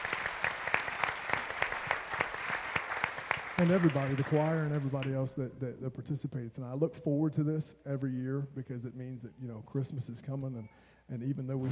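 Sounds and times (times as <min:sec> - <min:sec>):
church audience applause: 0:00.0 - 0:05.2
speech: 0:03.6 - 0:11.7.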